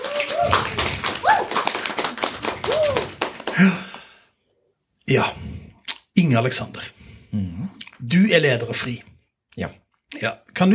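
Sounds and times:
audience clapping: 0.0s - 4.2s
speech: 3.6s - 3.9s, 5.1s - 5.6s, 6.2s - 10.7s.

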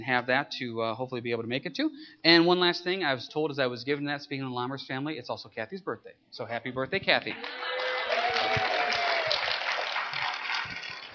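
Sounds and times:
speech: 0.0s - 7.9s
audience applauding: 7.2s - 11.1s.

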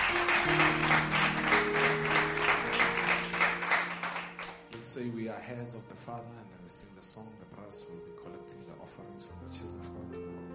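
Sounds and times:
audience clapping: 0.0s - 4.9s
speech: 5.4s - 10.5s.

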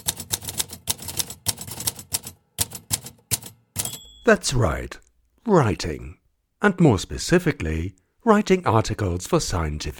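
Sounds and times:
typing on a typewriter: 0.0s - 4.1s
speech: 4.2s - 9.9s.

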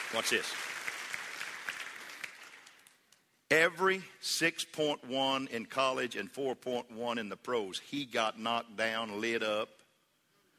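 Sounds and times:
audience cheering and applauding: 0.0s - 2.8s
speech: 0.1s - 0.7s, 3.5s - 9.8s.

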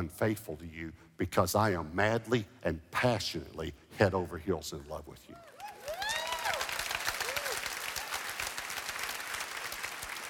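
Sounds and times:
speech: 0.0s - 5.5s
cheering whoops: 5.4s - 8.4s
women clapping: 5.6s - 10.2s.

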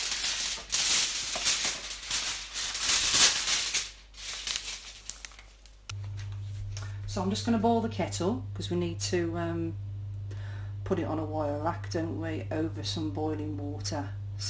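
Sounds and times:
aluminium foil being torn and crumpled: 0.0s - 6.6s
steady low hum: 0.0s - 14.4s
speech: 7.2s - 9.8s, 10.9s - 14.4s.

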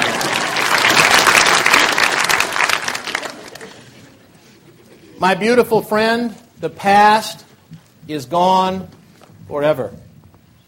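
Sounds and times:
audience applause: 0.0s - 4.3s
speech: 5.2s - 7.4s, 8.1s - 10.0s.

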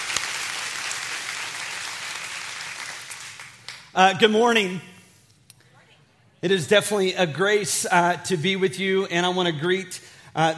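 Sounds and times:
church congregation applauding to welcome a guest Bible teacher: 0.0s - 4.0s
speech: 3.9s - 4.9s, 6.4s - 10.5s.

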